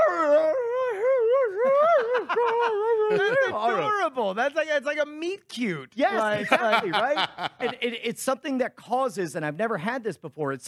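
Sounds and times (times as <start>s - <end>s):
excited dog howling and whining: 0.0s - 3.3s
laughter: 1.4s - 4.0s, 6.1s - 8.0s
speech: 3.1s - 10.6s.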